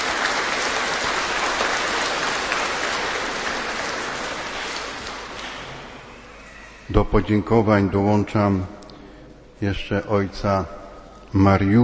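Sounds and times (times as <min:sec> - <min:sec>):
crowd applause: 0:00.0 - 0:06.1
speech: 0:06.9 - 0:08.8, 0:09.6 - 0:11.8.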